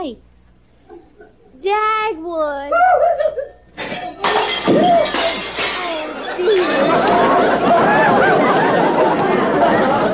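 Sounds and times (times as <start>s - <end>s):
speech: 0.0s - 0.3s, 1.6s - 4.1s
laughter: 0.8s - 1.6s, 2.8s - 3.7s, 4.3s - 10.1s
dishes crashing and shattering on the floor: 3.8s - 9.1s.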